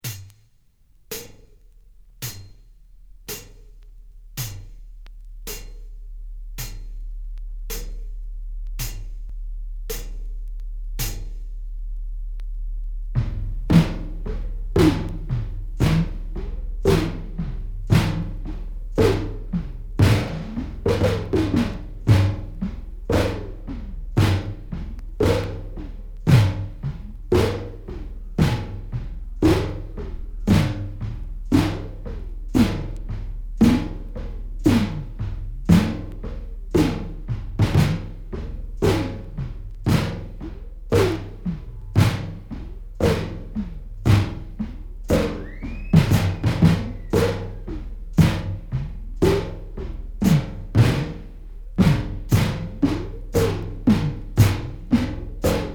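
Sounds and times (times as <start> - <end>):
dramatic rhythm: 0.0 - 55.7.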